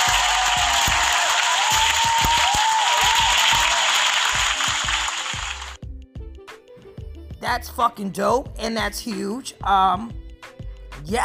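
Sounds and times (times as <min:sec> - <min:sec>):
round of applause: 0:00.0 - 0:05.8
speech: 0:07.5 - 0:10.2.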